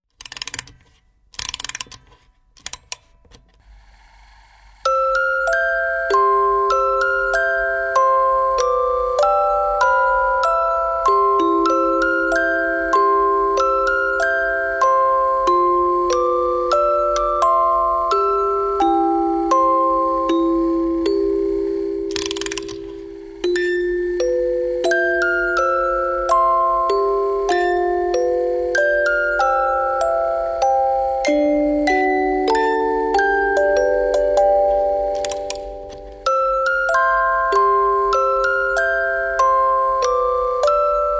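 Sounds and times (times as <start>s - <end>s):
baby toy melody: 4.8s - 41.1s.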